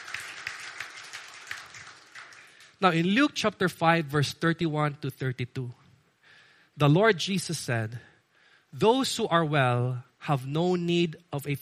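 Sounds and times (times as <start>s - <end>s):
church congregation clapping in praise: 0.0s - 3.1s
speech: 2.8s - 5.8s, 6.8s - 8.1s, 8.7s - 11.6s.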